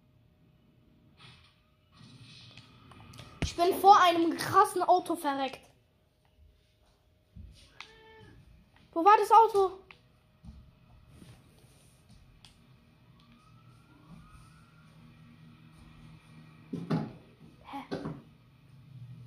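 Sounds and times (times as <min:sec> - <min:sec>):
speech: 0:03.6 - 0:05.7, 0:09.0 - 0:09.9
police siren in a video game: 0:12.5 - 0:16.9.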